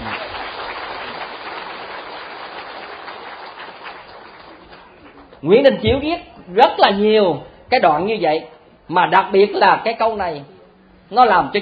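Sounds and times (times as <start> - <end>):
audience applause: 0.0 - 5.4
speech: 5.4 - 10.5, 11.1 - 11.6.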